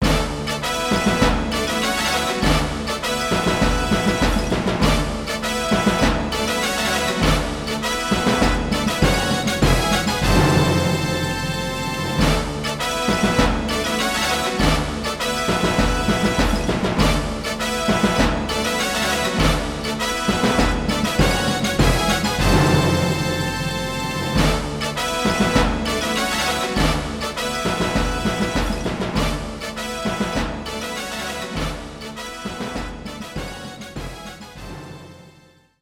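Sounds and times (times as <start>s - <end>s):
diplomacy background music: 0.0s - 35.8s.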